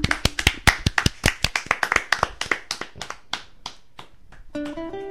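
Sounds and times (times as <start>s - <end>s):
audience clapping: 0.0s - 4.8s.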